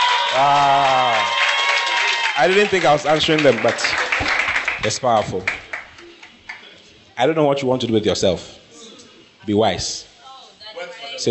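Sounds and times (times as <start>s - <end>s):
audience clapping: 0.0s - 6.7s
speech: 0.3s - 1.0s, 2.4s - 5.6s, 7.2s - 8.6s, 9.4s - 10.1s.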